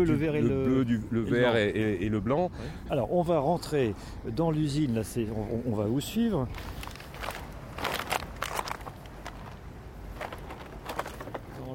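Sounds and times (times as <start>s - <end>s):
speech: 0.0s - 6.9s
footsteps on plastic bottles: 6.6s - 11.5s.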